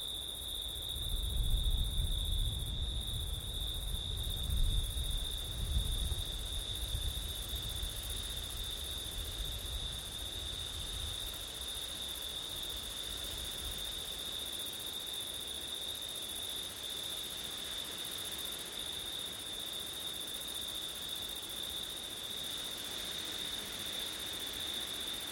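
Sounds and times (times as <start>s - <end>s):
crickets trilling: 0.0s - 25.3s
gusty wind rumble: 1.0s - 8.6s.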